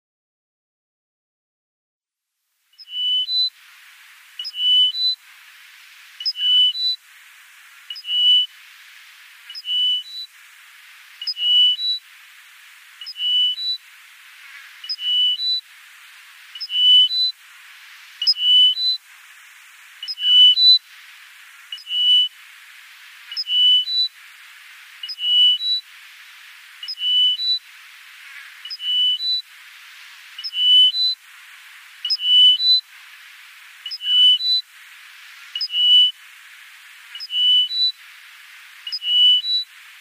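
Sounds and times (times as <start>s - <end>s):
bar-tailed lark song: 2.8s - 3.6s, 4.4s - 5.2s, 6.1s - 7.0s, 7.9s - 8.6s, 9.4s - 10.4s, 11.1s - 12.1s, 12.9s - 15.7s, 16.4s - 19.0s, 20.0s - 20.8s, 21.6s - 22.4s, 23.1s - 24.2s, 24.8s - 25.9s, 26.8s - 27.7s, 28.5s - 29.5s, 30.2s - 31.2s, 32.0s - 32.9s, 33.8s - 34.6s, 35.4s - 36.2s, 37.1s - 39.7s.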